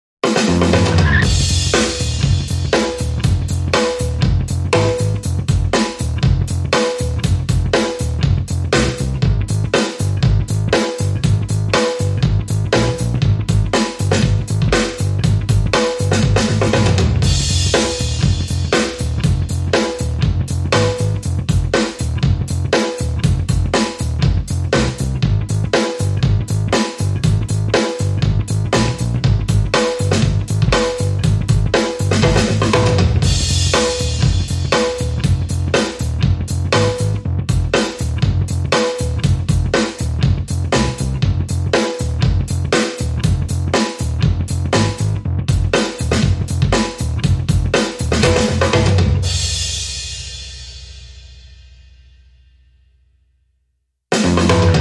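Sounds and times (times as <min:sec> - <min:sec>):
drums: 0:00.2 - 0:52.4, 0:54.1 - 0:54.7
bass: 0:00.2 - 0:54.7.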